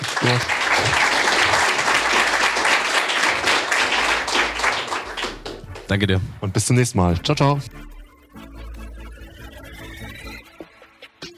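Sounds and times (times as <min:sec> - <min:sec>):
applause: 0:00.0 - 0:06.0
speech: 0:00.2 - 0:01.2, 0:05.9 - 0:07.9.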